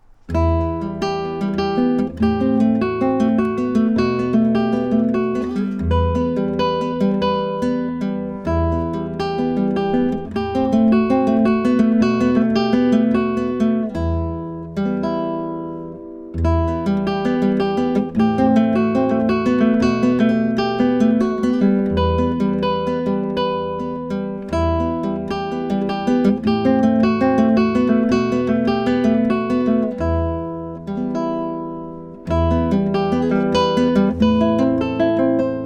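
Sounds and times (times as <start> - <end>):
guitar: 0.0 - 35.6.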